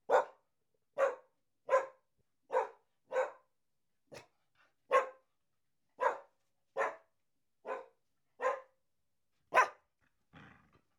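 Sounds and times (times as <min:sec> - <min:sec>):
dog barking: 0:00.1 - 0:00.4, 0:01.0 - 0:03.5, 0:04.9 - 0:05.2, 0:06.0 - 0:08.8, 0:09.5 - 0:09.8.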